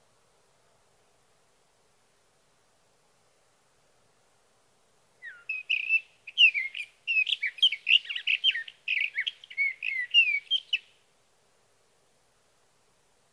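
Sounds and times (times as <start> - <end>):
sage thrasher singing: 5.2 - 10.9.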